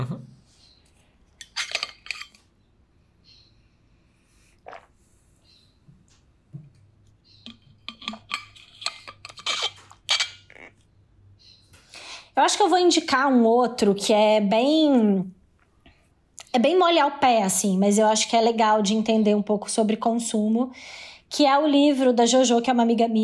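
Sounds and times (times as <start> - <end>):
sip of water from a glass: 4.4 - 5.2
speech: 12.4 - 15.4, 16.6 - 23.2.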